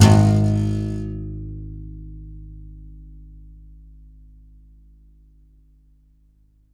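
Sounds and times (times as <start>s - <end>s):
contrabass balalaika plucked: 0.0s - 2.0s.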